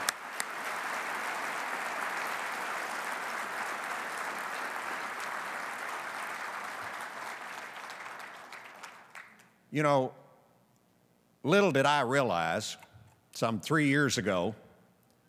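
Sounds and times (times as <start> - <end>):
round of applause: 0.0 - 9.6
speech: 9.7 - 10.2, 11.4 - 12.8, 13.4 - 14.6.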